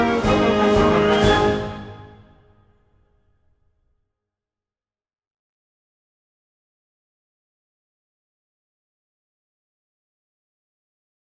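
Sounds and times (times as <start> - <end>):
marching band playing: 0.0 - 2.4.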